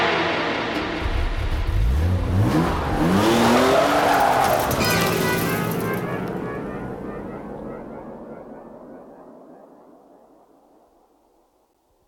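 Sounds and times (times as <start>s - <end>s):
car engine revving as the car speeds away: 0.1s - 8.6s
tires squealing: 1.8s - 8.0s.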